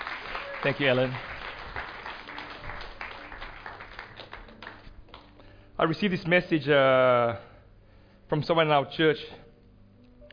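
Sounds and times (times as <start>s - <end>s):
audience applause: 0.0s - 5.3s
speech: 0.6s - 1.3s, 5.8s - 7.5s, 8.3s - 9.4s.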